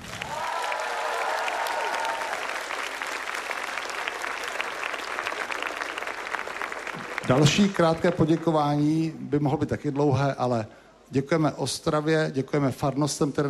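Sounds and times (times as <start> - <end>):
short round of applause: 0.0 - 8.9
speech: 7.3 - 13.4.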